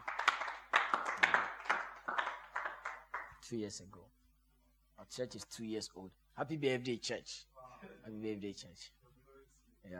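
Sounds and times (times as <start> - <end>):
audience clapping: 0.0 - 3.4
speech: 3.5 - 4.2, 5.1 - 9.0.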